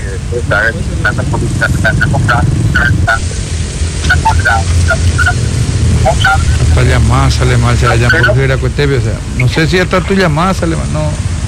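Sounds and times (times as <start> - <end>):
road noise hissing: 0.0 - 11.4
transport trucks passing along a roadway: 0.0 - 11.4
speech: 0.3 - 3.4, 4.1 - 11.4
high chirping tones: 1.8 - 10.6.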